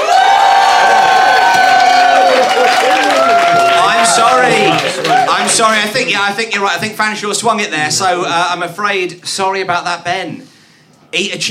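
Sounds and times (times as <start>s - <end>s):
audience applause: 0.0s - 6.0s
speech: 5.6s - 10.5s, 11.1s - 11.5s.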